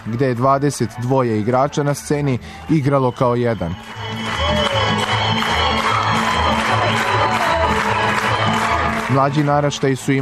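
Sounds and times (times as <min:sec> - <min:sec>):
speech: 0:00.0 - 0:04.2, 0:09.1 - 0:10.1
audience applause after a folk dance performance: 0:02.6 - 0:10.1.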